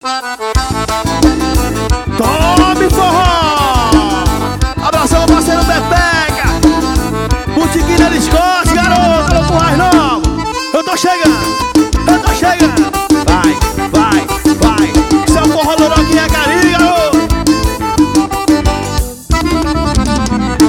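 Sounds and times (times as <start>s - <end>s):
forró music: 0.0s - 20.6s.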